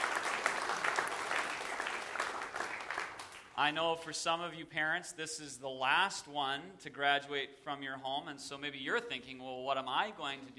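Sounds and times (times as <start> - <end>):
audience applause for parents: 0.0 - 3.7
speech: 3.6 - 10.5.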